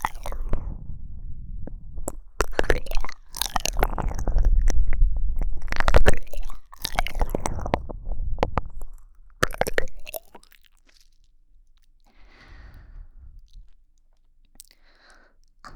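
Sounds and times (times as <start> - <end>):
wet squelching: 0.0 - 11.3.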